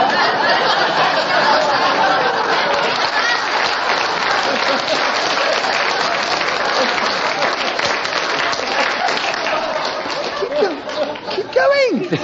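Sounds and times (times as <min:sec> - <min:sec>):
audience applause: 0:00.0 - 0:12.2
laughter: 0:00.0 - 0:12.2.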